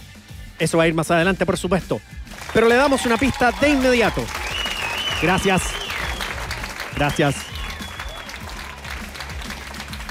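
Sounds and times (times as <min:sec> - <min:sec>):
speech: 0:00.6 - 0:04.4, 0:05.2 - 0:05.8, 0:07.0 - 0:07.5
audience applause from an unplugged live concert recording: 0:02.3 - 0:10.0.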